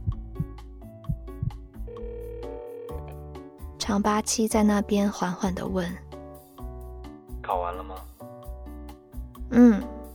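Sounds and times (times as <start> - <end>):
soft regular thumping beats: 0.0 - 2.1
telephone ringing tone electronic melody: 1.8 - 3.2
speech: 3.9 - 6.0.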